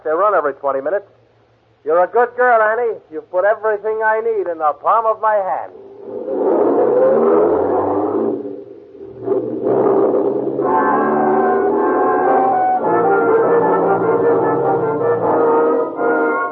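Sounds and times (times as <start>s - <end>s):
speech: 0.0s - 1.2s, 1.8s - 6.6s
car engine revving and driving away: 5.8s - 16.3s.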